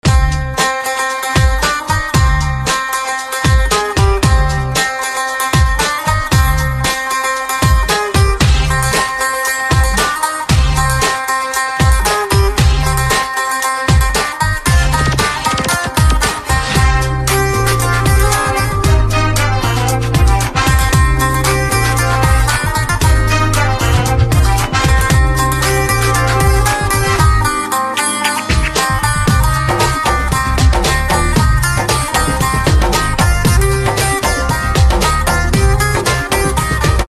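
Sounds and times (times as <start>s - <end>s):
guitar instrumental ringtone: 0.1s - 37.0s.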